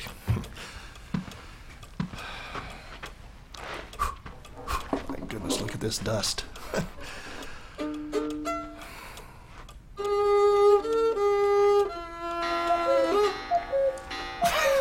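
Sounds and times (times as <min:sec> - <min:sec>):
speech: 0:05.8 - 0:07.2
cuckoo clock chiming a tune: 0:07.8 - 0:09.0, 0:10.0 - 0:14.7.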